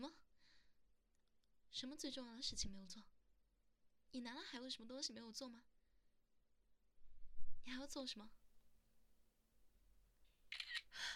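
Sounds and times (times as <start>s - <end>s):
speech: 0.0s - 0.3s, 1.7s - 3.1s, 4.1s - 5.7s, 7.6s - 8.4s
camera shutter clicks while a photo is taken: 10.5s - 10.9s.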